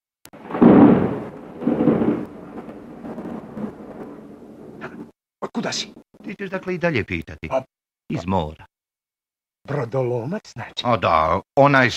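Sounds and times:
thunder after a lightning strike: 0.4 - 5.1
speech: 5.6 - 8.7, 9.6 - 11.9.

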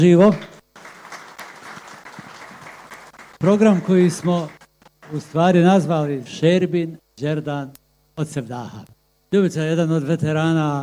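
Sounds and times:
speech: 0.0 - 0.5, 3.4 - 10.8
audience applause greeting two singers at a live sevdah music programme: 0.4 - 5.4.

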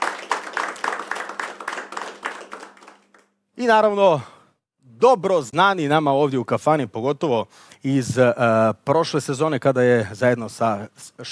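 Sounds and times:
people clapping in a tavern to welcome a singer and her band: 0.0 - 3.4
speech: 3.6 - 4.3, 5.0 - 11.3.

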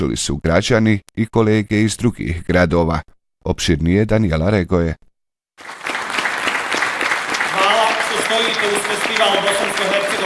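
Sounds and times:
speech: 0.0 - 5.9, 8.4 - 10.2
audience clapping at a drama festival in Zenica: 5.6 - 10.2.

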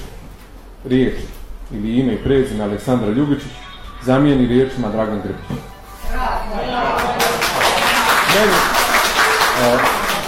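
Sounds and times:
speech: 0.8 - 5.7, 8.4 - 8.8, 9.6 - 10.0
applause in an assembly hall: 7.0 - 10.2.

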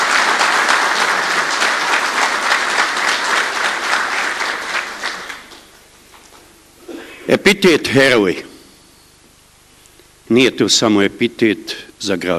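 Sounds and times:
audience applause for a boy who recited a poem: 0.0 - 5.8
speech: 7.3 - 8.5, 10.3 - 12.3.

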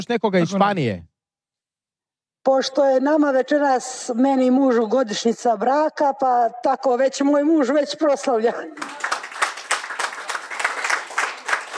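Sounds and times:
speech: 0.0 - 1.1, 2.4 - 9.1
audience applauding at a wedding anniversary celebration: 8.8 - 11.7.

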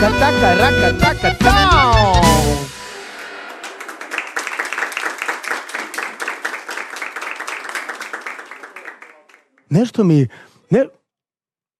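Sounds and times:
speech: 0.0 - 1.9, 9.7 - 11.0
weak show audience applause: 3.1 - 10.2.

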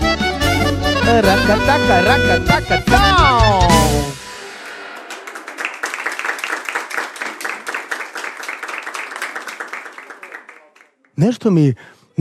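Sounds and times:
speech: 1.1 - 4.2, 11.2 - 12.2
thin audience applause at a live stage show: 5.0 - 11.2.

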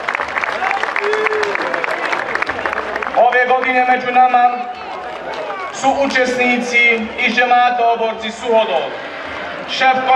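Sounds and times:
audience applause at a horseback procession event: 0.0 - 6.5
speech: 3.7 - 4.8, 5.8 - 9.0, 9.7 - 10.1.

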